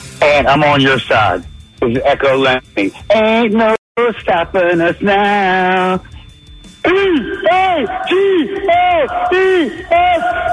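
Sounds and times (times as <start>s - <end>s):
speech: 0.4s - 6.1s, 6.8s - 10.5s
sports fan chant: 6.8s - 10.5s.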